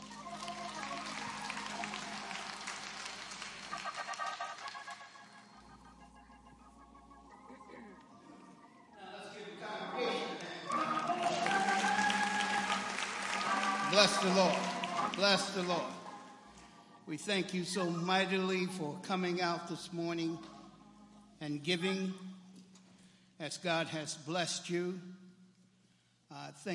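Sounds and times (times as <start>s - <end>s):
audience clapping for the choir: 0.0s - 5.7s, 10.3s - 16.8s
speech: 14.0s - 14.6s, 15.2s - 16.0s, 17.1s - 20.5s, 21.4s - 22.2s, 23.4s - 25.1s, 26.6s - 26.7s.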